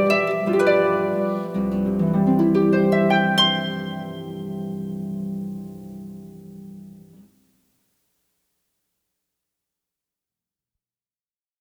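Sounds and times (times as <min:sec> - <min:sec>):
wedding march music: 0:00.0 - 0:06.6.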